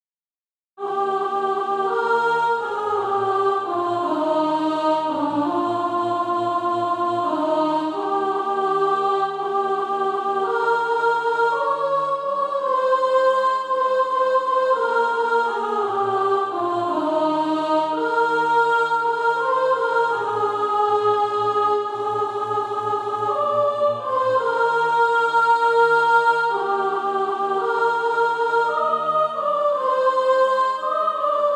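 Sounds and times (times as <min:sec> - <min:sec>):
soprano singing: 0:00.8 - 0:31.5.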